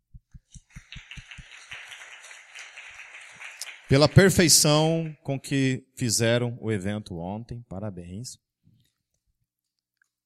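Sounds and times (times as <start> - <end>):
applause: 0.5 - 5.3
speech: 3.9 - 8.5.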